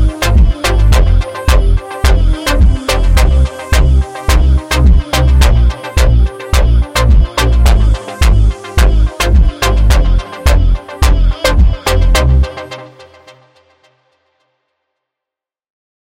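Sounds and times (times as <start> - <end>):
slowed funk music: 0.0 - 12.6.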